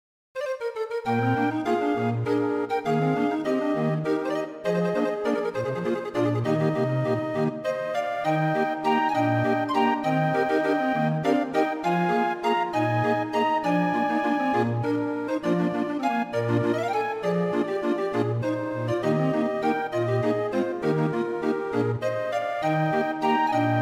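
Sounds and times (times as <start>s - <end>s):
waltz music: 0.4s - 23.7s.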